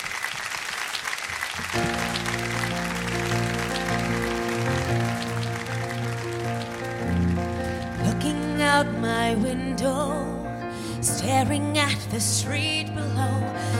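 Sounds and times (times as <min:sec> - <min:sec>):
audience clapping welcoming a singer: 0:00.0 - 0:08.6
sustained instrumental music: 0:01.7 - 0:13.7
speech: 0:11.2 - 0:13.7.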